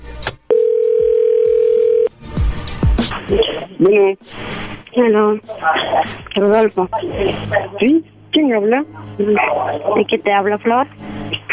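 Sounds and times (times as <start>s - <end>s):
steady telephone tone after call is cut off: 0.5s - 2.1s
speech: 3.3s - 11.1s.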